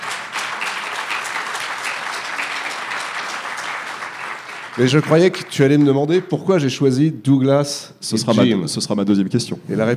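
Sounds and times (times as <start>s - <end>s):
audience applause: 0.0s - 6.3s
speech: 4.8s - 9.9s.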